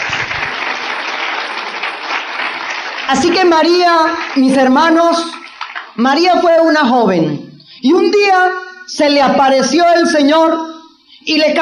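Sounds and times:
audience applause: 0:00.0 - 0:06.0
speech: 0:03.1 - 0:05.4, 0:06.0 - 0:11.6.

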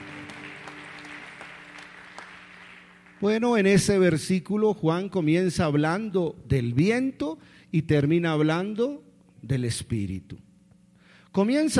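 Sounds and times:
audience applause: 0:00.0 - 0:03.4
speech: 0:03.2 - 0:10.5, 0:11.3 - 0:11.7.

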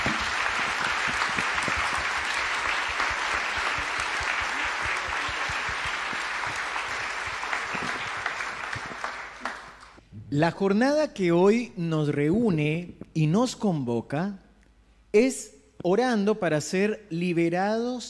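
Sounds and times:
audience applause: 0:00.0 - 0:10.0
speech: 0:10.3 - 0:14.4, 0:15.1 - 0:18.0.

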